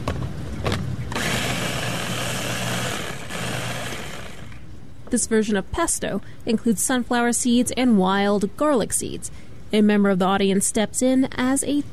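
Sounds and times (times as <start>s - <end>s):
blender blending leafy greens: 1.1s - 4.6s
speech: 5.1s - 11.9s.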